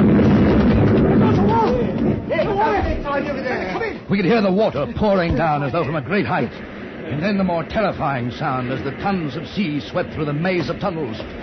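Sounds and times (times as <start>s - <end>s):
dynamite explosion in a tunnel: 0.0s - 2.8s
speech: 4.1s - 11.4s.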